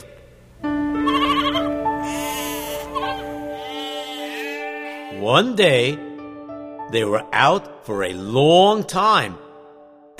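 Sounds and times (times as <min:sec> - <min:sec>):
sheep at pasture bleating: 0:01.0 - 0:05.4
speech: 0:05.3 - 0:06.0, 0:06.9 - 0:09.4.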